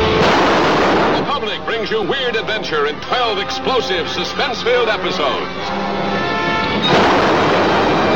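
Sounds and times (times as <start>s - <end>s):
ray gun firing in a science-fiction adventure: 0.2s - 1.5s, 6.9s - 8.1s
speech: 2.0s - 5.9s.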